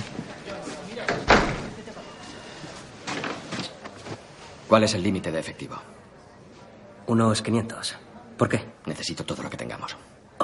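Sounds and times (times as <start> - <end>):
low murmur of voices: 0.0 - 10.4
door being shut: 1.0 - 1.8
speech: 4.7 - 6.0, 7.1 - 10.4.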